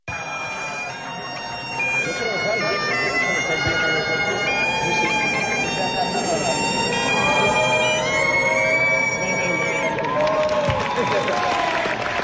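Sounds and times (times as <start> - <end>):
bagpipes playing: 0.1 - 10.4
crowd murmur: 0.1 - 12.2
laughter: 0.4 - 9.4, 10.6 - 12.2
applause: 9.4 - 12.2.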